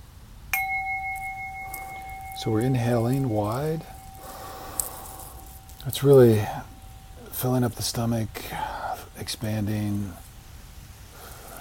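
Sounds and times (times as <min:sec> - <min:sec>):
gong being rung: 0:00.6 - 0:08.2
speech: 0:02.4 - 0:04.0, 0:05.8 - 0:06.7, 0:07.4 - 0:10.2.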